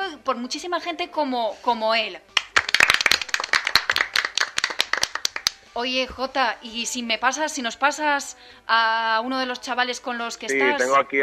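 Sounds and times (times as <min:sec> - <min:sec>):
speech: 0:00.2 - 0:02.4, 0:05.8 - 0:11.2
applause from a small group: 0:02.4 - 0:05.6.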